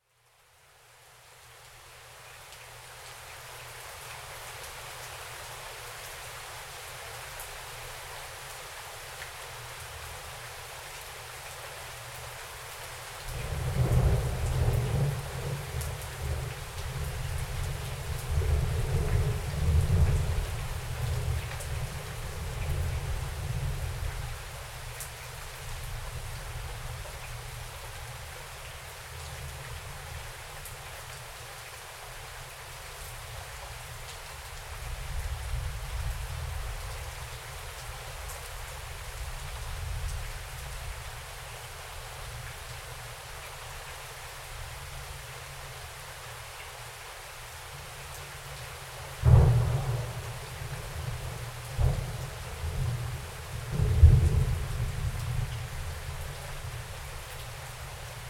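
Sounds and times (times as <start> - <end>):
rain outside: 0.0 - 58.2
thunder outside: 49.2 - 50.3, 51.7 - 52.2, 53.7 - 54.6.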